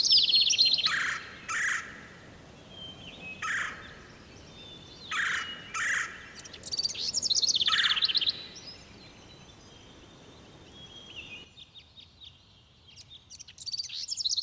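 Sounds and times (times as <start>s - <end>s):
bird whistling: 0.0s - 2.0s, 4.6s - 8.6s.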